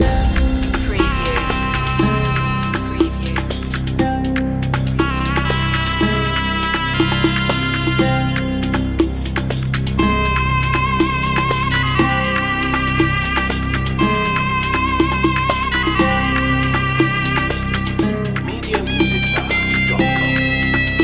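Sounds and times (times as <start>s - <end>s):
mystical eastern music loop: 0.0s - 21.0s.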